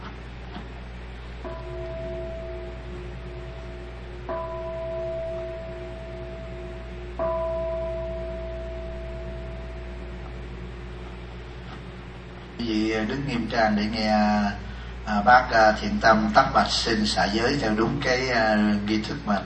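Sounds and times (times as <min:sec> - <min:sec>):
temple bell strikes: 0:01.4 - 0:11.7
speech: 0:13.0 - 0:19.4.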